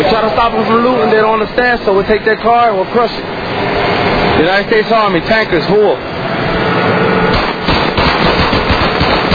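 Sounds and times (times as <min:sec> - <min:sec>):
speech: 0:00.2 - 0:06.7
automatic gunfire from soldiers shooting at a car: 0:07.3 - 0:09.3.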